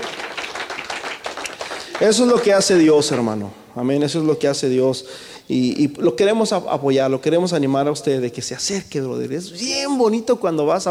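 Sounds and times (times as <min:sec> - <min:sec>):
crowd applauding: 0:00.0 - 0:03.4
speech: 0:02.0 - 0:10.9.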